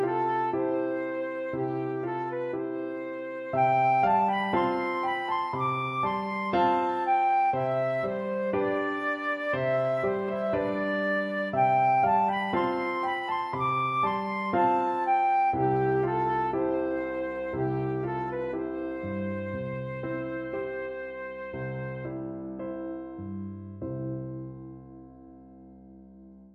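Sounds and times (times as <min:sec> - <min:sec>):
flute playing a lullaby: 0:00.0 - 0:22.3.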